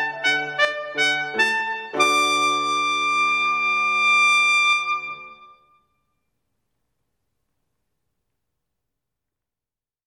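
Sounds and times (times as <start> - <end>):
trumpet concerto allegro: 0.0 - 5.8.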